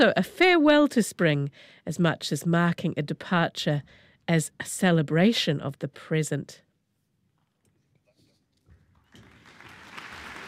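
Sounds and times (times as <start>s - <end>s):
speech: 0.0s - 6.6s
concert audience applause: 9.1s - 10.4s.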